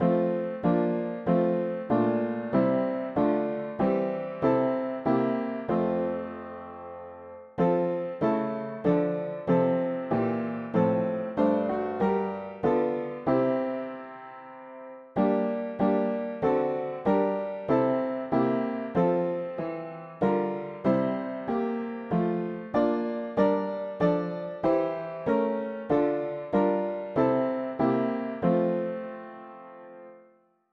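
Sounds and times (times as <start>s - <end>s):
mono piano: 0.0s - 30.7s.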